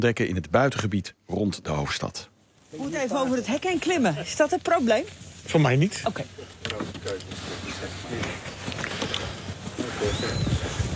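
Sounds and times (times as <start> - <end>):
speech: 0.0 - 8.4, 10.0 - 10.6
northern lapwing calling in farmland: 9.0 - 10.9
wind-like rushing noise: 9.8 - 10.9.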